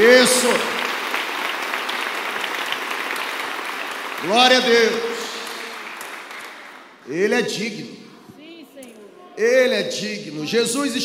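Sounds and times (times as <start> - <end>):
speech: 0.0 - 0.8, 4.2 - 5.1, 7.1 - 8.0, 9.4 - 11.0
crowd audience applauding: 0.0 - 7.0.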